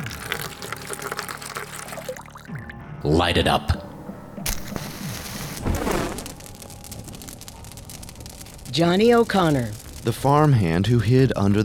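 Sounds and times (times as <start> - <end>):
coal oil being poured: 0.0 - 2.8
speech: 3.0 - 3.8, 8.8 - 11.6.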